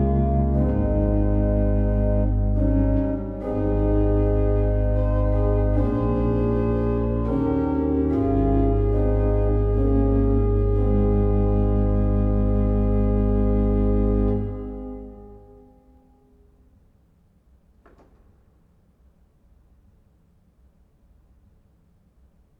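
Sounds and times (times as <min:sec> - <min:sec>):
organ Rohrflute 8 and Viola Di Gamba 8 stops with tremulant: 0:00.0 - 0:15.7.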